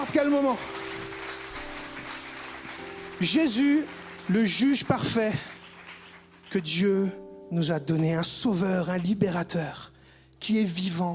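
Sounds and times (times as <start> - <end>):
speech: 0.0 - 1.0, 3.2 - 5.5, 6.5 - 11.1
crowd applauding: 0.0 - 7.1.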